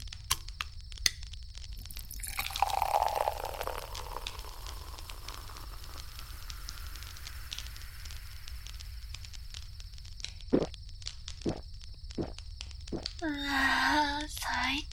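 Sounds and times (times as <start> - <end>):
soft continuous crackle and hiss: 0.0 - 14.9
drink poured into a paper cup: 1.8 - 7.8.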